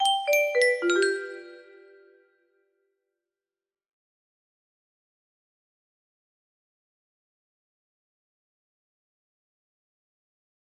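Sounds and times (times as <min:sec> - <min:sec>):
music box melody: 0:00.0 - 0:02.0.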